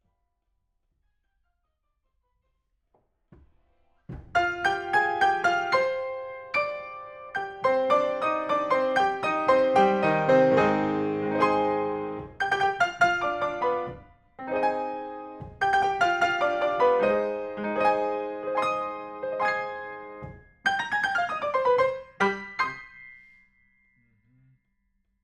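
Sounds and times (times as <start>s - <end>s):
piano: 4.1s - 23.9s.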